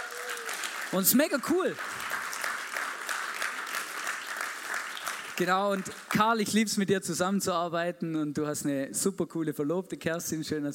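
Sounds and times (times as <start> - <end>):
audience applause: 0.0 - 6.2
speech: 0.9 - 2.0, 5.4 - 10.7.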